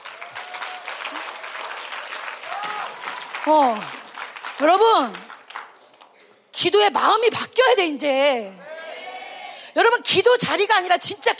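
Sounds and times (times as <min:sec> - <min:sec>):
audience clapping: 0:00.0 - 0:06.2
speech: 0:03.4 - 0:04.0, 0:04.6 - 0:05.3, 0:06.6 - 0:08.6, 0:09.8 - 0:11.3.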